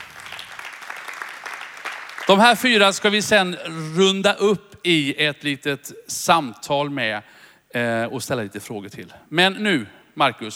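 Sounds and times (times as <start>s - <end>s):
audience applause: 0.0s - 2.6s
speech: 2.3s - 10.5s.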